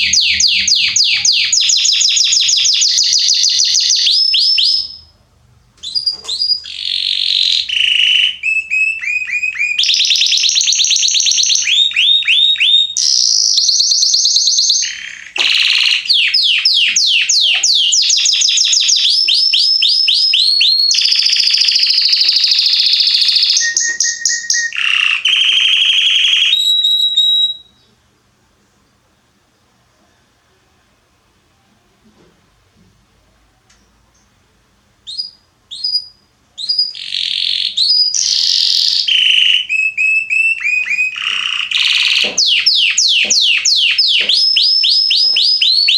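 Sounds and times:
Belgian canary song with trills: 0:00.0 - 0:05.2, 0:05.8 - 0:28.1, 0:35.0 - 0:45.9.

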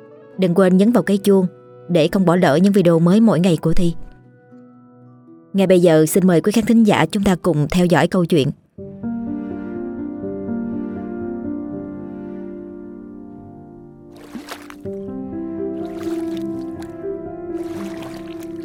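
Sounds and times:
speech: 0:00.4 - 0:04.0, 0:05.5 - 0:08.6
oars paddling a rowboat through calm river water: 0:14.1 - 0:15.1, 0:15.7 - 0:18.6.

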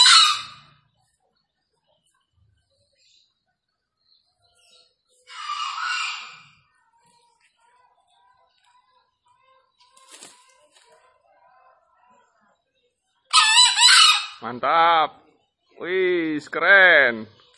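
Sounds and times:
green junglefowl crowing: 0:00.0 - 0:00.7, 0:05.3 - 0:06.5, 0:13.3 - 0:14.4
speech: 0:14.4 - 0:15.2, 0:15.8 - 0:17.4.

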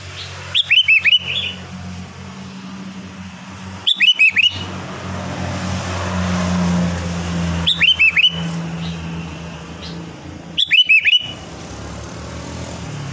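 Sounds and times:
engine rumble: 0:00.0 - 0:13.1
sooty-headed bulbul whistling: 0:00.1 - 0:01.6, 0:03.8 - 0:04.7, 0:07.6 - 0:09.0, 0:09.8 - 0:11.5.

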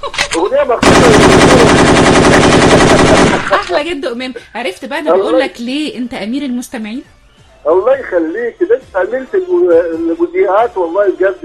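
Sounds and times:
speech: 0:00.1 - 0:02.1, 0:03.8 - 0:11.4
gunfire sound effect: 0:00.8 - 0:03.7.

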